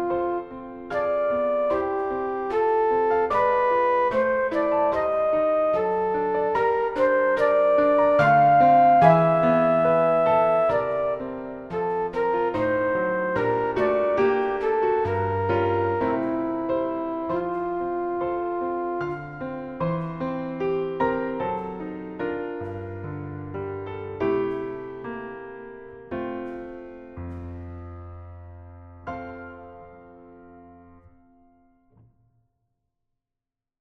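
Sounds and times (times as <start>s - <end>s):
flute: 0.0s - 25.1s
piano: 0.0s - 32.2s.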